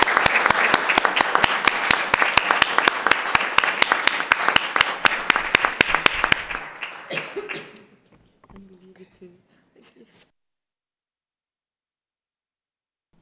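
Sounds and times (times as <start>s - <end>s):
audience applause: 0.0s - 7.8s.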